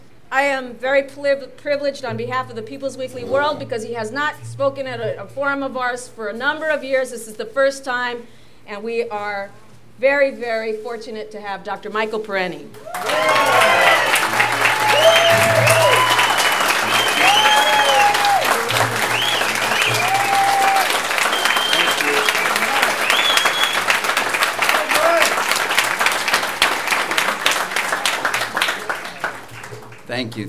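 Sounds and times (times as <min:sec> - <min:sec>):
speech: 0:00.3 - 0:13.8, 0:30.2 - 0:30.4
audience applause before a speech: 0:12.8 - 0:30.4.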